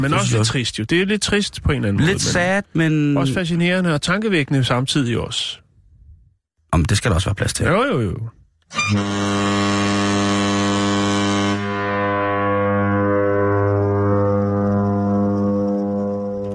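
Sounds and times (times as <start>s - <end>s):
speech: 0.0s - 5.6s, 6.7s - 10.7s
ferry horn blaring: 8.7s - 16.5s.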